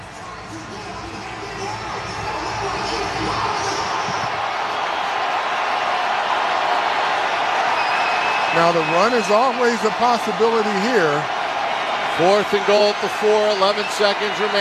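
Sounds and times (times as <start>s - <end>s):
stadium crowd on their feet cheering: 0.0s - 14.5s
speech: 0.5s - 1.2s, 8.6s - 11.4s, 12.2s - 14.5s.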